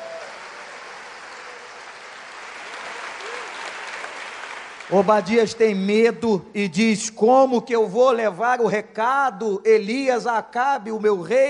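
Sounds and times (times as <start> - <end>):
audience applause: 0.0 - 5.3
speech: 4.9 - 11.4.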